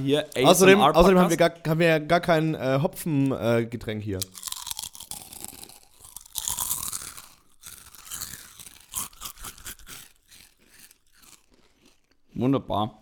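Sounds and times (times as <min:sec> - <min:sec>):
speech: 0:00.0 - 0:04.5, 0:12.4 - 0:12.9
crunching and chewing lentil chips: 0:04.2 - 0:12.5.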